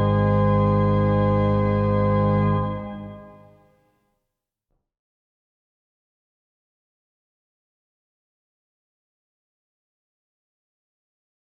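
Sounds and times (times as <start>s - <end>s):
chorale prelude music: 0.0s - 3.7s.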